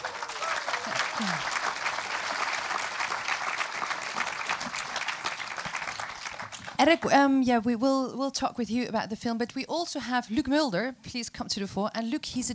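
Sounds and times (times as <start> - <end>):
audience applause: 0.0 - 6.8
speech: 1.2 - 1.6, 6.8 - 12.5.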